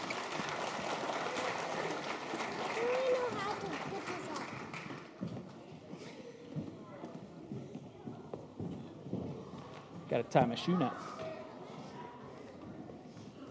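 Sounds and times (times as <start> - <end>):
audience applauding the kids at the close of a show: 0.0 - 5.3
speech: 10.2 - 11.2.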